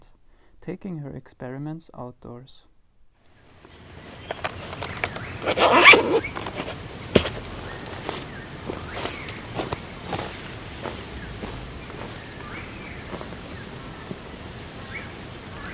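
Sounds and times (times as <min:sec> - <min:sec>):
speech: 0:00.7 - 0:02.7, 0:05.4 - 0:06.4
soft footsteps: 0:03.5 - 0:15.4
zip-like rustle: 0:03.6 - 0:09.3.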